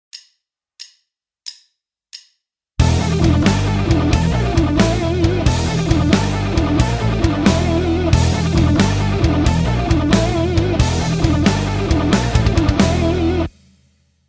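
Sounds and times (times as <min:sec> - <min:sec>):
guitar: 0:02.8 - 0:13.5.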